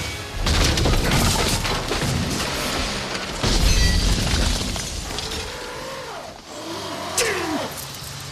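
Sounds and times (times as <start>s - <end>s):
car engine roaring and whining: 0.0s - 8.3s
crashing and rattling bursts: 0.4s - 5.7s.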